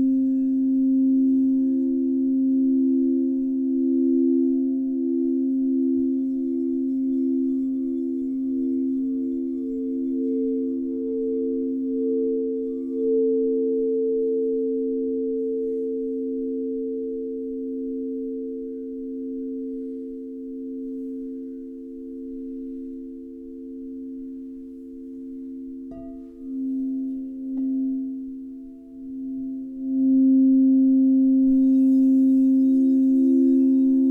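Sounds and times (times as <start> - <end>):
crystal singing bowls: 0.0 - 34.1.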